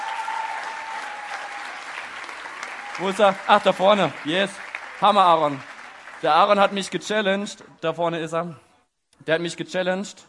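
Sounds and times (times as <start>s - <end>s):
audience applause: 0.0s - 7.0s
speech: 3.0s - 8.6s, 9.2s - 10.2s.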